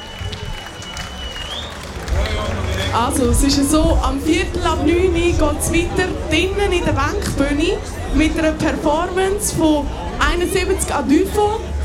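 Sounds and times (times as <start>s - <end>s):
audience applause: 0.0s - 3.7s
speech: 2.9s - 11.7s.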